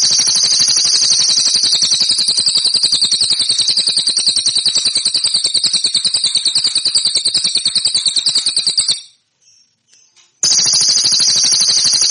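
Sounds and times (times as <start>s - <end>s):
cililin song metallic trill: 0.0s - 12.0s.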